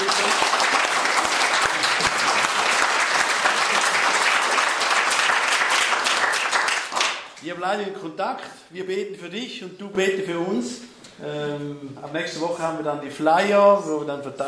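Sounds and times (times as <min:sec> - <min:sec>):
audience applause: 0:00.0 - 0:07.3
speech: 0:07.6 - 0:14.4.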